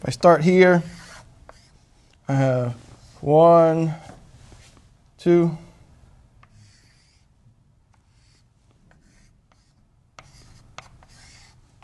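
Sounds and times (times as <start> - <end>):
speech: 0.0 - 1.0, 2.3 - 4.1, 5.2 - 5.6
drawing cycles by hand: 0.8 - 1.9, 6.4 - 7.3, 8.0 - 11.8.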